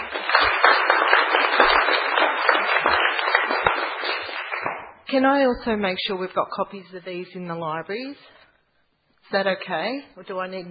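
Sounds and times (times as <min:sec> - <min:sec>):
room full of people applauding: 0:00.0 - 0:04.9
speech: 0:05.1 - 0:08.4, 0:09.3 - 0:10.6.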